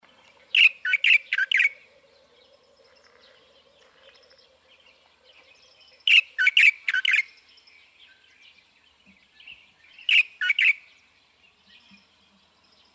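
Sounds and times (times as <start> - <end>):
light-vented bulbul calling: 0.3 - 7.7, 9.0 - 11.0.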